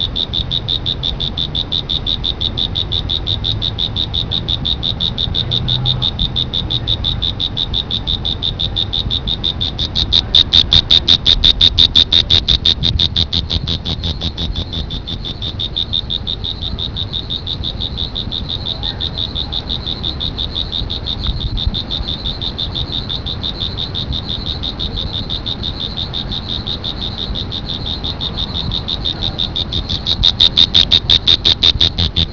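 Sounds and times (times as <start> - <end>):
cricket chirping: 0.0 - 32.3.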